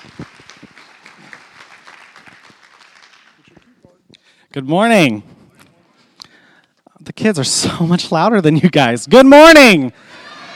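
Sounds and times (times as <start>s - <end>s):
church audience applauding a missionary couple: 0.0s - 3.8s
speech: 4.5s - 5.3s, 7.2s - 10.2s.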